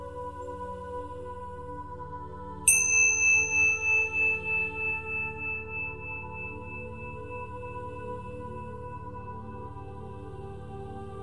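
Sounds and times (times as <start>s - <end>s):
meditation chime struck: 2.7s - 10.1s.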